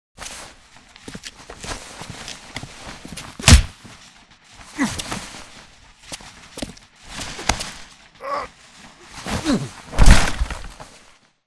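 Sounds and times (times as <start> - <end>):
people brawling: 2.8 - 11.0.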